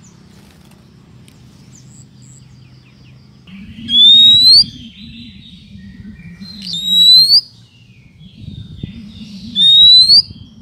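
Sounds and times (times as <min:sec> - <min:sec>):
bird chirping and twittering: 0:00.0 - 0:10.6.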